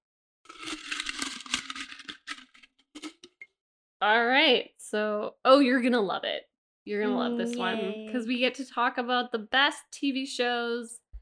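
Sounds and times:
paper slip drawn from a container and unfolded: 0:00.5 - 0:03.4
speech: 0:04.0 - 0:11.0.

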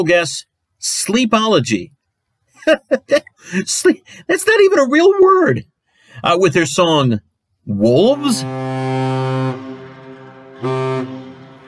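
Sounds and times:
speech: 0:00.0 - 0:02.0, 0:02.6 - 0:09.2, 0:10.6 - 0:11.2
laughter: 0:02.6 - 0:03.6
ship's foghorn blasts: 0:08.1 - 0:11.6.

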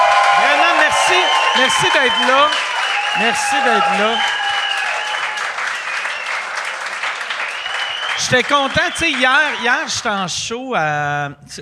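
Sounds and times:
audience applause: 0:00.0 - 0:10.3
faint whistles: 0:01.2 - 0:06.5, 0:07.3 - 0:09.7
speech: 0:01.6 - 0:04.4, 0:08.2 - 0:11.6.

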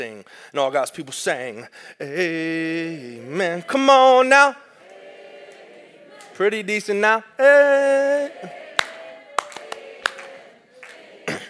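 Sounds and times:
speech: 0:00.0 - 0:04.7, 0:06.4 - 0:08.6
audience clapping along on beat: 0:08.4 - 0:11.4.

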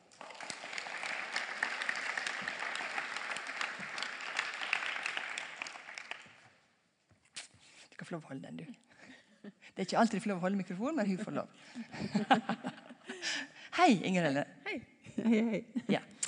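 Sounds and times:
audience applause: 0:00.0 - 0:06.5
speech: 0:08.1 - 0:08.9, 0:09.8 - 0:14.5, 0:15.3 - 0:16.1
laughter: 0:11.7 - 0:13.4.

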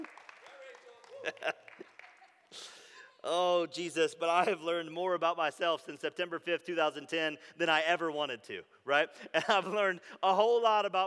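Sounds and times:
audience cheering and applauding: 0:00.0 - 0:02.3
speech: 0:01.2 - 0:01.6, 0:02.5 - 0:11.0.

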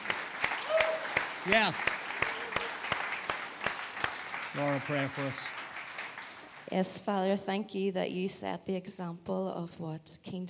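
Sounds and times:
audience applauding: 0:00.0 - 0:07.0
speech: 0:01.4 - 0:01.9, 0:04.6 - 0:05.6, 0:06.7 - 0:10.4.

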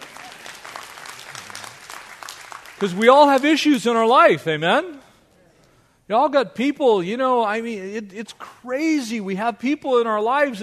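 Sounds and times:
audience applauding: 0:00.0 - 0:03.6
speech: 0:02.8 - 0:05.0, 0:06.1 - 0:10.6.

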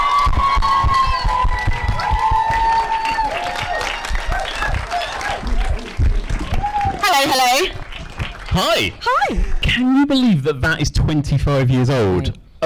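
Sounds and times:
audience applause and cheering: 0:00.0 - 0:09.2
speech: 0:08.6 - 0:12.6.

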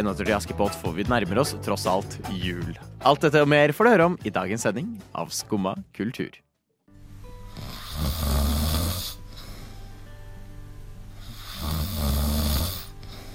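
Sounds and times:
speech: 0:00.0 - 0:06.5
person snoring while asleep: 0:07.5 - 0:09.8, 0:11.2 - 0:13.3
quiet breathing: 0:08.8 - 0:10.3, 0:12.6 - 0:13.3.

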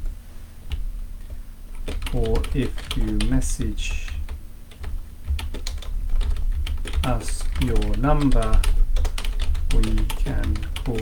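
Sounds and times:
low steady hum: 0:00.0 - 0:11.0
typing on a computer keyboard: 0:01.7 - 0:03.3, 0:04.0 - 0:11.0
speech: 0:02.1 - 0:04.1, 0:07.1 - 0:08.8, 0:09.7 - 0:11.0.

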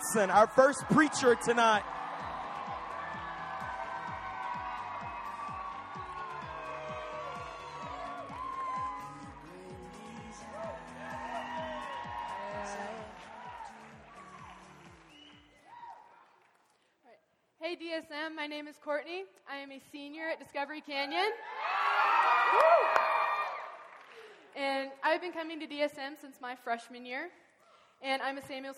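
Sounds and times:
large crowd applauding and cheering: 0:00.0 - 0:16.7, 0:21.4 - 0:24.5
speech: 0:00.1 - 0:02.0, 0:18.8 - 0:21.7, 0:22.5 - 0:23.2, 0:24.6 - 0:27.4, 0:28.0 - 0:28.7
whoops and shouting voices: 0:00.7 - 0:14.8, 0:15.6 - 0:16.2, 0:21.4 - 0:23.8.

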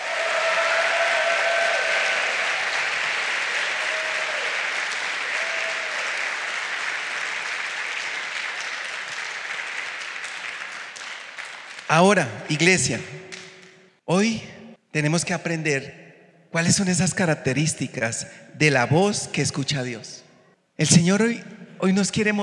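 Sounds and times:
audience applause: 0:00.0 - 0:11.9
speech: 0:11.9 - 0:13.3, 0:14.1 - 0:20.2, 0:20.8 - 0:22.4.

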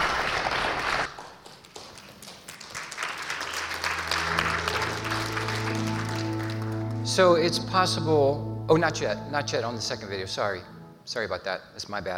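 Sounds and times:
audience applause: 0:00.0 - 0:07.0
sustained low musical tones: 0:03.5 - 0:12.1
speech: 0:07.2 - 0:12.1.

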